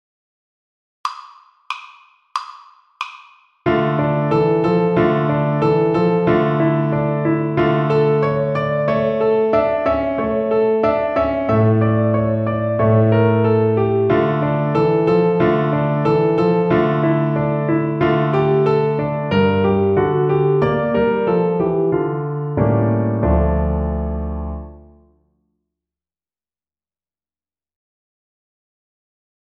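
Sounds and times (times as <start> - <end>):
piano accompaniment: 3.6 - 25.2.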